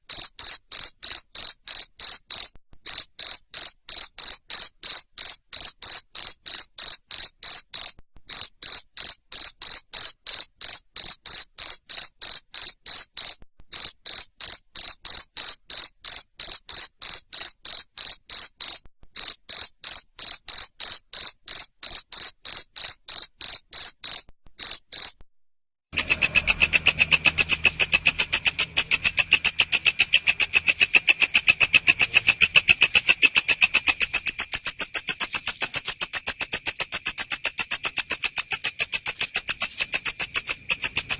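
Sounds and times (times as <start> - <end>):
cricket chirping: 0.1 - 25.2, 26.0 - 41.1
low hum: 26.0 - 37.3.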